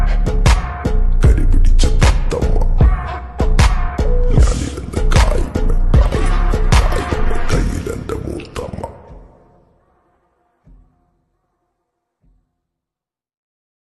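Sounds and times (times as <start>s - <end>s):
slowed reverb music: 0.2s - 11.0s.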